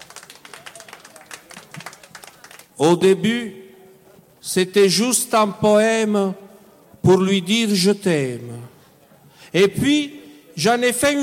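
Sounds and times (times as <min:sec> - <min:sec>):
audience applauding a poet coming on stage: 0:00.0 - 0:02.8
speech: 0:02.8 - 0:03.6, 0:04.4 - 0:06.4, 0:07.0 - 0:08.7, 0:09.5 - 0:11.2.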